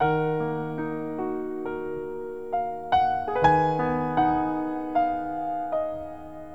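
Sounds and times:
sad piano: 0:00.0 - 0:06.5.

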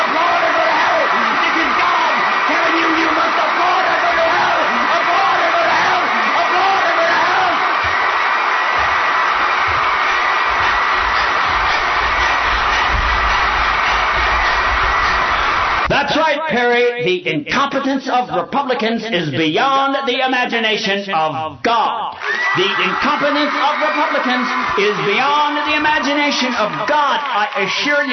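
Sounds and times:
dense clapping: 0:00.0 - 0:15.9, 0:22.2 - 0:28.1
crowd cheering with whoops and shouts: 0:00.0 - 0:16.2, 0:22.1 - 0:28.1
speech: 0:17.0 - 0:28.1.

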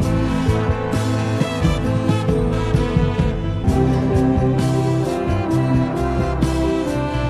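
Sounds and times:
horns: 0:00.0 - 0:07.2.

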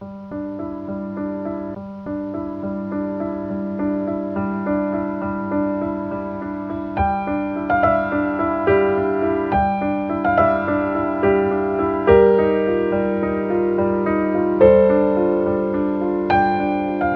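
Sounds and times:
sad piano loop: 0:00.0 - 0:17.1.

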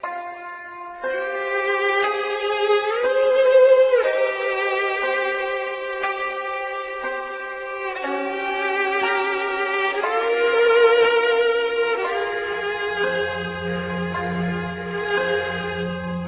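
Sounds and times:
sad string music loop: 0:00.0 - 0:16.2.

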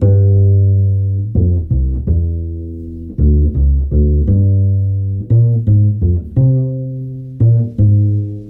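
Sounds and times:
bass: 0:00.0 - 0:08.4.

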